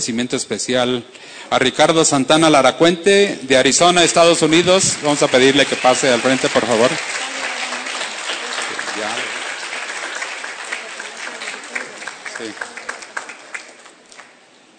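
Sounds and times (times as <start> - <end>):
speech: 0.0 - 7.2
audience applause: 4.2 - 14.5.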